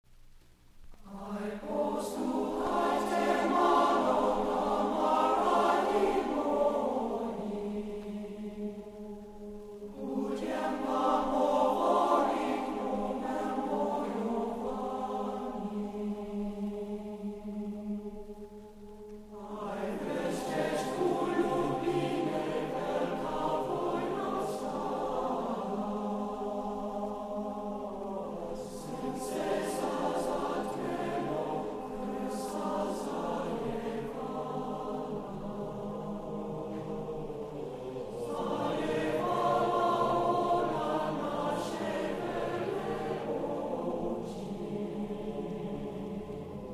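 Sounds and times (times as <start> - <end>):
glee club singing Slovak folk songs: 1.0 - 46.7.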